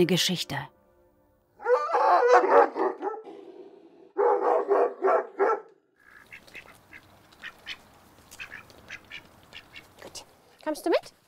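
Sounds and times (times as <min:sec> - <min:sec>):
speech: 0:00.0 - 0:00.8, 0:10.7 - 0:11.1
Caucasian Ovcharka livestock guardian dog barking: 0:01.6 - 0:05.8.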